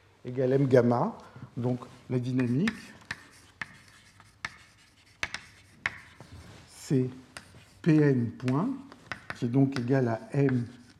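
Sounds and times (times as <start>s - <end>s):
speech: 0.2s - 3.0s, 6.9s - 10.8s
writing an equation during a physics lecture: 2.3s - 10.9s.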